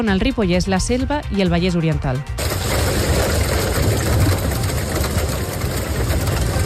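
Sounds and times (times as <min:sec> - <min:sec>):
speech: 0:00.0 - 0:02.8
deep rumbling wind: 0:02.4 - 0:06.6
hail pattering: 0:02.4 - 0:06.6
heavy rain during a storm: 0:02.4 - 0:06.6.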